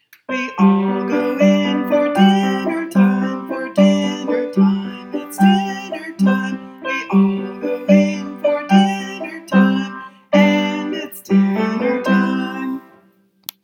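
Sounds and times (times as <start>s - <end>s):
grandmother singing at dinner time: 0.3s - 13.0s.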